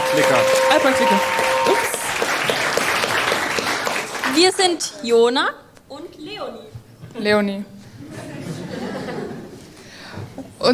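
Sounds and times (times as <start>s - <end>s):
audience applause: 0.0s - 4.7s
speech: 0.1s - 1.9s, 4.4s - 7.7s
laughter: 8.0s - 9.8s.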